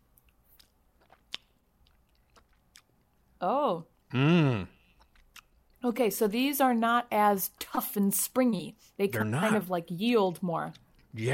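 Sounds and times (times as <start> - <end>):
chewing a big Albanese gummy candy: 0.1 - 3.4, 4.8 - 5.8, 10.0 - 11.3
speech: 3.4 - 4.7, 5.9 - 11.3.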